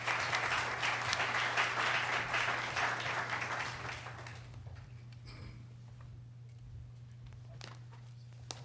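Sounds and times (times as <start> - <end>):
audience applause: 0.0 - 4.6.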